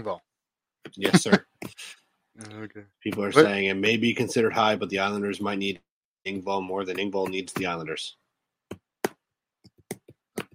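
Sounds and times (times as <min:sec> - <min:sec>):
speech: 0:00.0 - 0:08.2
finger tapping on a computer: 0:08.7 - 0:10.5.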